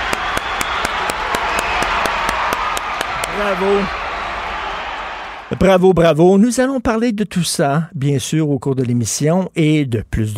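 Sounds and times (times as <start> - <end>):
sharp evenly spaced claps: 0.0 - 3.9
audience applauding health-care union members: 0.0 - 5.8
speech: 3.4 - 4.0, 5.5 - 10.3.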